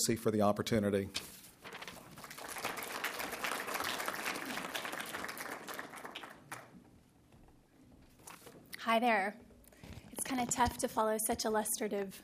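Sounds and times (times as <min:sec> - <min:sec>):
speech: 0:00.0 - 0:01.4, 0:09.0 - 0:09.5, 0:10.3 - 0:12.2
audience applause: 0:02.2 - 0:06.8.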